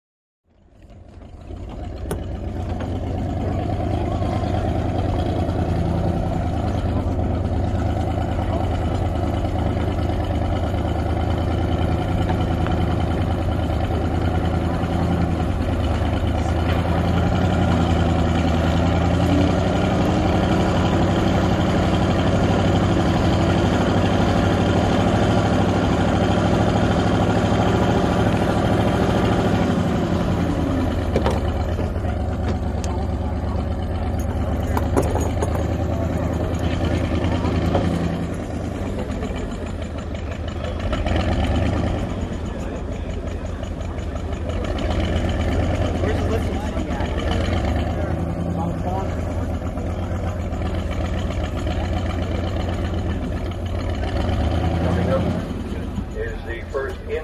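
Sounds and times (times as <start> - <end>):
motorboats at a boat race pit: 0.4 - 57.2.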